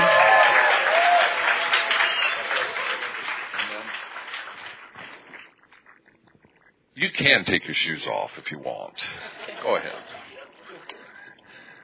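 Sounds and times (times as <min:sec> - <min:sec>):
audience applause welcoming a guest onto the stage at a bilingual live event: 0:00.0 - 0:05.8
speech: 0:07.2 - 0:10.1
laughter: 0:09.0 - 0:11.4.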